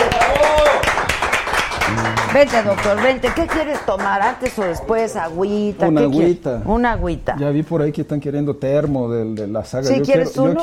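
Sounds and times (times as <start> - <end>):
applause: 0.0 - 4.8
speech: 2.3 - 10.6.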